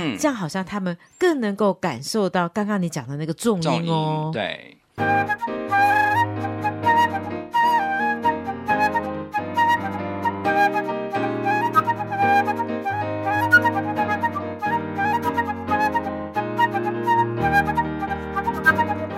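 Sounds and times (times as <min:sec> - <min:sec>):
speech: 0:00.0 - 0:07.2
flute melody: 0:05.0 - 0:19.1
piano chords and bass notes: 0:05.0 - 0:19.1.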